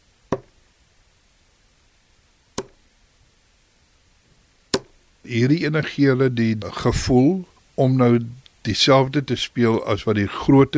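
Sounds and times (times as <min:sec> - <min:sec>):
plastic soft-tip dart sticking in a dartboard: 0:00.3 - 0:00.6, 0:02.6 - 0:02.8, 0:04.7 - 0:05.0
speech: 0:05.3 - 0:10.7.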